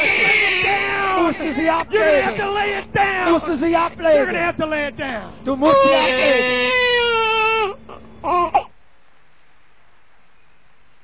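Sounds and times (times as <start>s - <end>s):
baby crying: 0.0s - 2.8s, 5.6s - 8.7s
speech: 1.4s - 6.9s, 8.2s - 8.7s.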